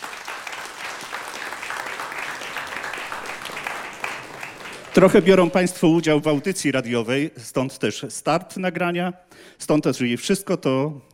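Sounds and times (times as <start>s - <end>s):
audience applause: 0.0s - 6.5s
speech: 5.0s - 11.1s.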